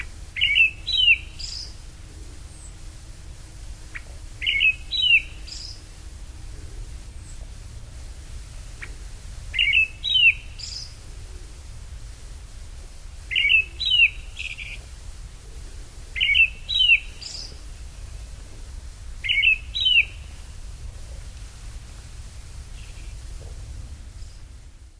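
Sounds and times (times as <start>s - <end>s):
brown thrush calling: 0.0s - 1.8s, 3.9s - 6.0s, 8.7s - 11.0s, 13.3s - 14.8s, 16.1s - 17.8s, 19.2s - 20.7s.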